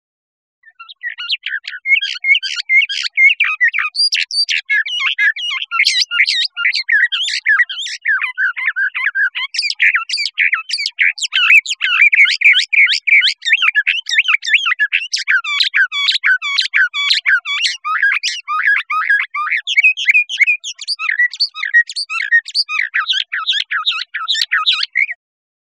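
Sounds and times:
bird singing: 0.6s - 25.2s.

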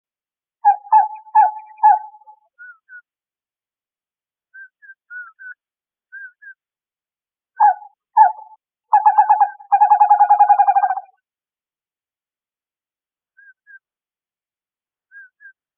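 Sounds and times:
western screech owl hooting and trilling: 0.6s - 2.4s, 7.6s - 11.2s.

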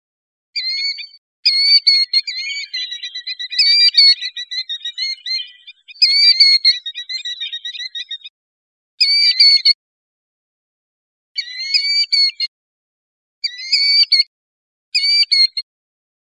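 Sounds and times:
killdeer calls: 0.6s - 8.3s, 9.0s - 9.7s, 11.4s - 12.5s, 13.5s - 14.3s, 15.0s - 15.6s.

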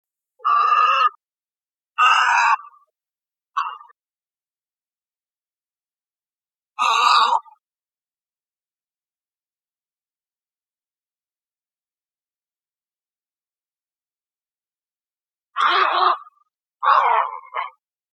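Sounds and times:
bird harsh squawks: 0.4s - 1.2s, 2.0s - 2.8s, 6.8s - 7.6s, 15.6s - 17.8s.

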